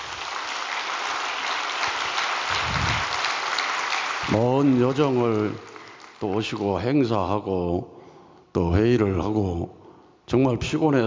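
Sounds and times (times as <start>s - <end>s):
audience applause: 0.0s - 6.7s
speech: 4.4s - 11.0s.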